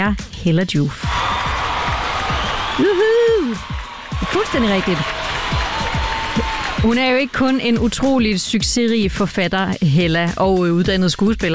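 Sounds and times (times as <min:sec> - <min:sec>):
speech: 0:00.0 - 0:01.1, 0:02.8 - 0:05.6, 0:06.4 - 0:11.5
low thumping beats: 0:01.0 - 0:10.2
applause sound effect with cheering: 0:01.1 - 0:08.2.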